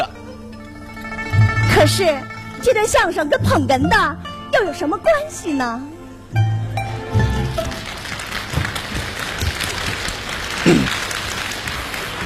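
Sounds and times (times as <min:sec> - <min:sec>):
speech: 0:01.8 - 0:06.5
audience applause: 0:07.3 - 0:12.2.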